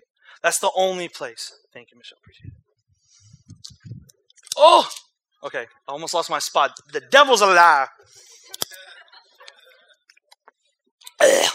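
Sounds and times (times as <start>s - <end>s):
speech: 0.4s - 2.6s, 4.6s - 8.7s, 11.2s - 11.5s
pastor burping: 4.5s - 5.0s, 11.1s - 11.5s.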